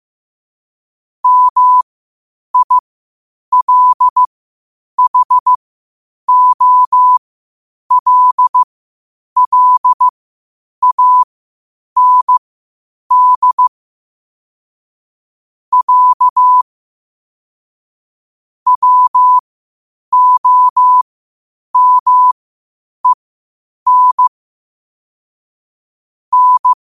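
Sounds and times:
morse code at 5 wpm: 1.2s - 1.8s, 2.6s - 2.8s, 3.5s - 4.3s, 5.0s - 5.6s, 6.3s - 7.2s, 7.9s - 8.7s, 9.4s - 10.1s, 10.8s - 11.3s, 12.0s - 12.4s, 13.1s - 13.7s, 15.7s - 16.6s, 18.7s - 19.4s, 20.1s - 21.0s, 21.8s - 22.4s, 23.9s - 24.3s, 26.3s - 26.8s.

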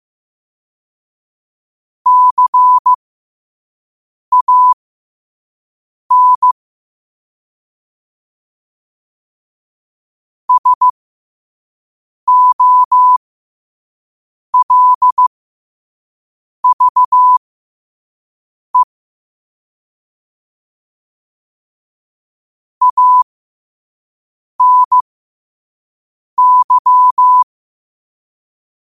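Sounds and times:
morse code at 5 wpm: 2.1s - 3.0s, 4.3s - 4.8s, 6.1s - 6.6s, 10.5s - 11.0s, 12.3s - 13.2s, 14.6s - 15.3s, 16.6s - 17.4s, 22.8s - 23.2s, 24.6s - 25.0s, 26.4s - 27.5s.

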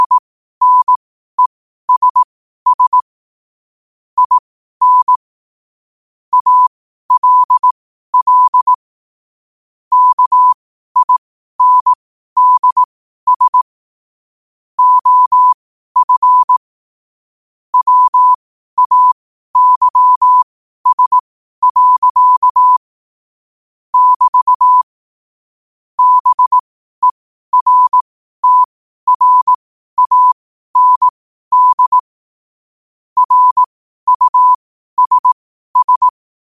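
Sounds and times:
morse code at 5 wpm: 0.0s - 3.1s, 4.2s - 5.2s, 6.3s - 8.8s, 9.9s - 13.7s, 14.8s - 16.6s, 17.8s - 22.8s, 24.0s - 25.0s, 26.0s - 32.1s, 33.2s - 36.2s.

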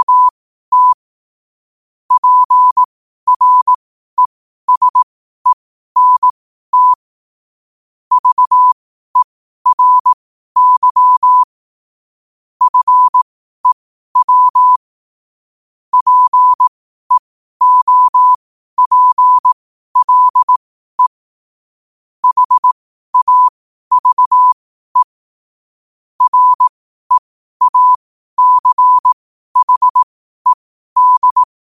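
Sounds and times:
morse code at 5 wpm: 0.0s - 1.0s, 2.1s - 5.1s, 6.0s - 7.0s, 8.1s - 11.5s, 12.6s - 14.8s, 15.9s - 21.2s, 22.2s - 25.2s, 26.2s - 31.5s.

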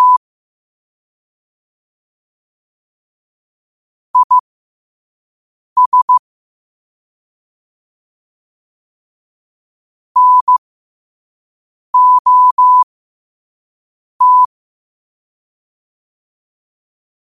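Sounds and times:
morse code at 5 wpm: 0.0s - 0.2s, 4.2s - 4.4s, 5.8s - 6.2s, 10.2s - 10.6s, 12.0s - 12.8s, 14.2s - 14.5s.

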